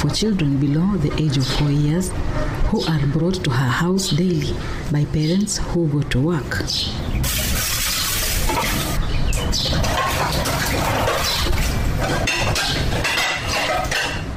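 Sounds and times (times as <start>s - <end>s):
speech: 0.0s - 7.6s
dishes clinking outside a one-bedroom house in the Ndogo slums of Mombasa County: 7.3s - 14.3s.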